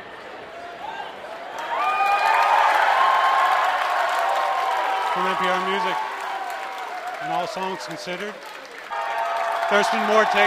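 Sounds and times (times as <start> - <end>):
concert crowd roaring and cheering: 0.0 - 10.4
speech: 5.2 - 6.1, 7.2 - 8.6, 9.7 - 10.4.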